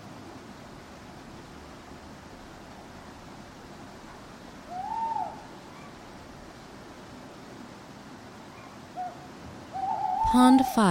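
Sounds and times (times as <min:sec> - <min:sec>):
steady hiss: 0:00.0 - 0:10.8
owl hooting: 0:04.7 - 0:06.0, 0:08.5 - 0:10.7
speech: 0:10.3 - 0:10.8.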